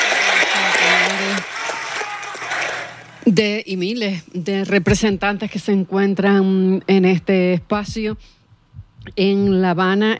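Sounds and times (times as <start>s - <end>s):
applause: 0.0s - 3.1s
speech: 3.2s - 8.4s, 9.0s - 10.1s.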